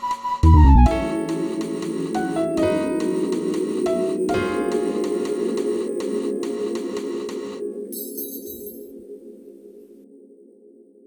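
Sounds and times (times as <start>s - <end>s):
piano playing a song in place of vocals: 0.7s - 7.9s.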